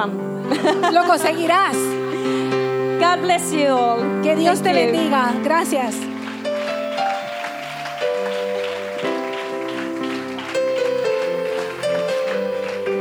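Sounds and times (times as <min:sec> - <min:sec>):
speech: 0:00.0 - 0:06.1
sustained organ-like chords: 0:00.0 - 0:12.9
laughter: 0:00.5 - 0:02.3
crowd applauding: 0:05.4 - 0:12.9.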